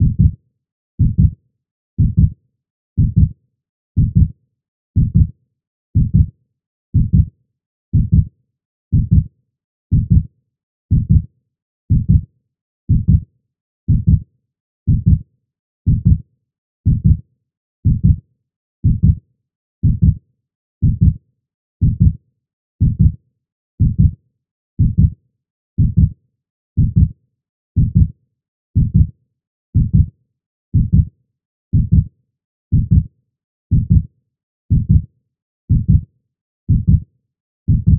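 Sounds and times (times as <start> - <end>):
fast heartbeat: 0.0 - 0.4, 1.0 - 1.4, 2.0 - 2.3, 3.0 - 3.3, 4.0 - 4.3, 5.0 - 5.3, 6.0 - 6.3, 7.0 - 7.3, 8.0 - 8.3, 9.0 - 9.3, 9.9 - 10.3, 10.9 - 11.2, 11.9 - 12.2, 12.9 - 13.2, 13.9 - 14.2, 14.9 - 15.2, 15.9 - 16.2, 16.9 - 17.2, 17.8 - 18.2, 18.8 - 19.2, 19.8 - 20.2, 20.8 - 21.2, 21.8 - 22.2, 22.8 - 23.2, 23.8 - 24.2, 24.8 - 25.1, 25.8 - 26.1, 26.8 - 27.1, 27.8 - 28.1, 28.8 - 29.1, 29.8 - 30.1, 30.8 - 31.1, 31.7 - 32.1, 32.7 - 33.1, 33.7 - 34.1, 34.7 - 35.0, 35.7 - 36.0, 36.7 - 37.0, 37.7 - 37.9.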